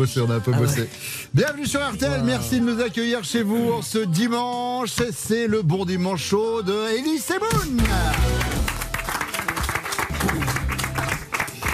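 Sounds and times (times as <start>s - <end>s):
speech: 0.0s - 8.6s
applause: 7.5s - 11.7s.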